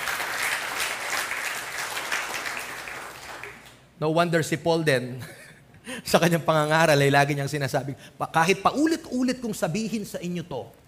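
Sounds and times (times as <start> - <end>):
congregation clapping during church worship: 0.0 - 3.9
speech: 4.0 - 5.4, 6.0 - 10.8.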